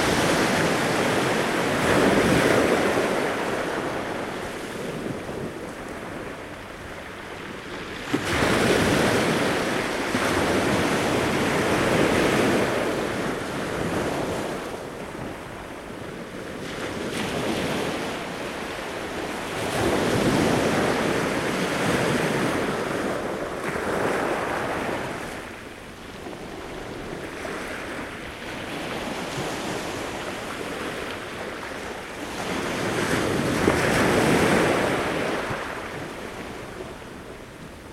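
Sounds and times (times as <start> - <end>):
waves on beach: 0.0 - 37.9.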